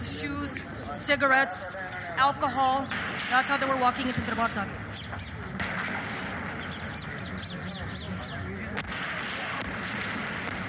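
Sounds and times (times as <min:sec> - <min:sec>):
speech: 0:00.2 - 0:05.7
bombs exploding: 0:02.9 - 0:07.4, 0:08.6 - 0:10.6.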